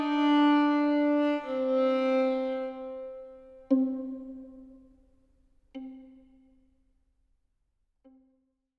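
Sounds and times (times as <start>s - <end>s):
solo violin royal theme: 0.0s - 4.7s.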